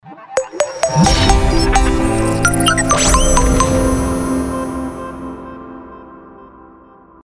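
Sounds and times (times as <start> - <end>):
audio logo: 0.4 - 5.9.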